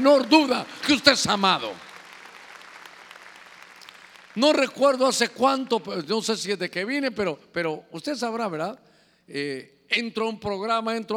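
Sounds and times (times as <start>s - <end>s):
speech: 0.0s - 1.9s, 4.4s - 11.1s
audience clapping loudly: 0.0s - 5.7s.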